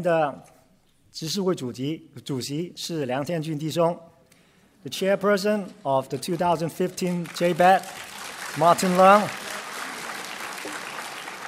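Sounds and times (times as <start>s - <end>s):
speech: 0.0s - 0.5s, 1.1s - 4.1s, 4.8s - 9.4s
audience applause in a church as deacons are introduced: 6.3s - 11.4s.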